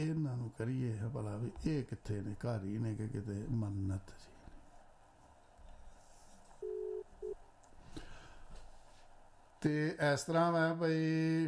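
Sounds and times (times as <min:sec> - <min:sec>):
speech: 0:00.0 - 0:04.4, 0:09.6 - 0:11.4
telephone tone while placing a call: 0:06.6 - 0:07.4.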